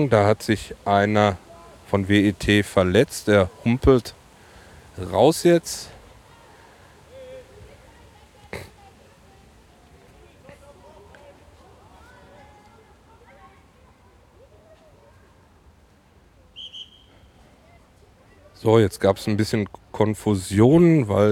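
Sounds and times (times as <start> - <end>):
speech: 0.0 - 4.2, 5.0 - 5.9, 18.6 - 21.2
referee's whistle blowing: 16.6 - 17.4.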